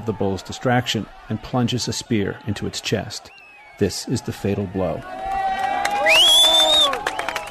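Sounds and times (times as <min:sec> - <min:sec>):
speech: 0:00.0 - 0:05.4
crowd cheering and shouting at a bull festival: 0:00.0 - 0:07.4
shrill rising whistle-like tone: 0:06.0 - 0:07.4.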